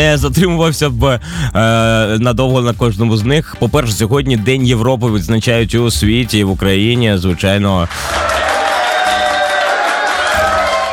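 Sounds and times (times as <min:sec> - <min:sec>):
speech: 0:00.0 - 0:08.5
crowd applause: 0:07.7 - 0:10.9.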